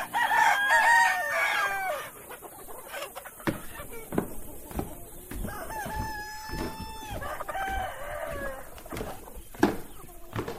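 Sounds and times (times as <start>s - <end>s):
rooster crowing: 0.0s - 2.2s, 5.3s - 9.2s
clucks: 0.0s - 10.5s
short sharp knocks and rustles: 3.4s - 10.5s.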